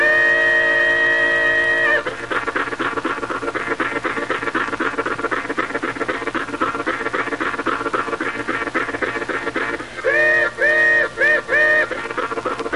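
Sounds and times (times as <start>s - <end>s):
harmonica: 0.0s - 12.7s.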